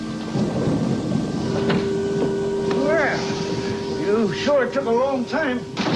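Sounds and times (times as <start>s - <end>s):
thunderstorm: 0.2s - 3.8s
speech: 4.3s - 5.8s.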